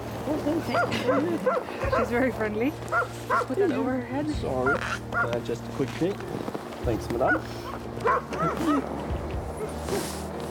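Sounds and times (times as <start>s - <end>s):
speech: 0.4s - 9.1s, 9.9s - 10.2s
sled dogs barking and yipping: 0.7s - 3.7s, 4.6s - 5.4s, 7.2s - 10.0s.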